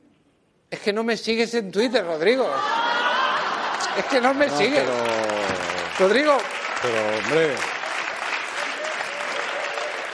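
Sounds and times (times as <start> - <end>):
speech: 0.8 - 2.9, 4.0 - 7.7
laughter: 2.5 - 5.9
applause: 3.3 - 10.1.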